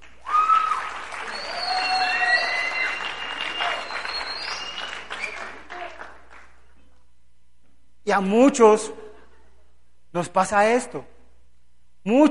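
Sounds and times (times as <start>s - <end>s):
audience applause: 0.0s - 6.6s
speech: 8.1s - 9.0s, 10.1s - 11.1s, 12.0s - 12.2s.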